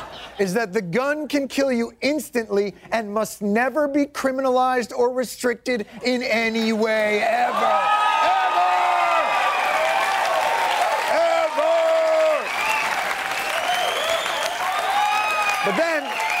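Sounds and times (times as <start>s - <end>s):
speech: 0.4s - 8.3s
studio audience applause: 7.0s - 16.3s
whoops and cheering shouts: 7.5s - 16.3s.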